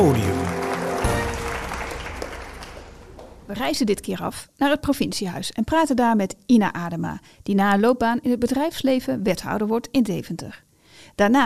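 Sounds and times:
loud applause: 0:00.0 - 0:03.5
speech: 0:03.5 - 0:11.4.

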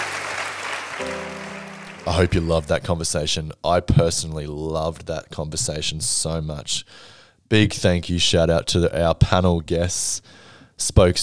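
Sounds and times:
audience applause: 0:00.0 - 0:02.3
speech: 0:01.0 - 0:01.4, 0:02.0 - 0:11.2.

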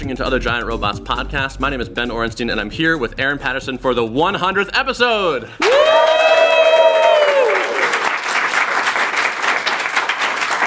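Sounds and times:
speech: 0:00.0 - 0:06.1
person whooping: 0:05.6 - 0:08.1
live studio audience applause: 0:05.6 - 0:10.6.

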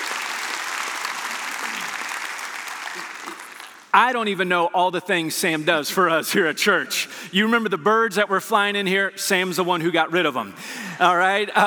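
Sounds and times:
church congregation applauding: 0:00.0 - 0:04.0
speech: 0:03.9 - 0:11.6.

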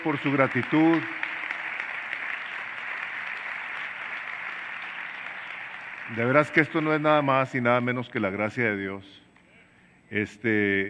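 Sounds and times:
speech: 0:00.0 - 0:01.2, 0:06.1 - 0:09.2, 0:10.1 - 0:10.8
crowd applause: 0:00.0 - 0:07.6.

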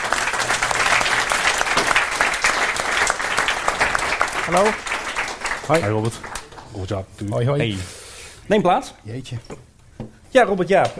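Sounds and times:
audience applause: 0:00.0 - 0:06.7
speech: 0:04.5 - 0:04.9, 0:05.7 - 0:09.6, 0:10.3 - 0:10.9.

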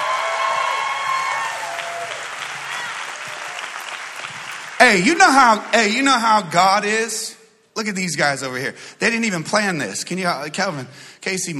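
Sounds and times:
audience applause: 0:00.0 - 0:06.0
speech: 0:04.8 - 0:11.5.

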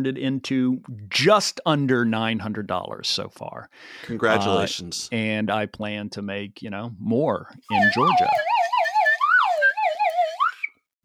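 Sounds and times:
speech: 0:00.0 - 0:08.5
slide whistle sound effect: 0:07.7 - 0:10.9.

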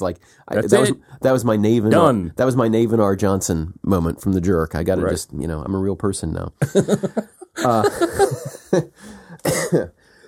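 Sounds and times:
speech: 0:00.0 - 0:10.0
laughter: 0:06.6 - 0:09.0
congested phlegmy cough: 0:09.4 - 0:10.0.

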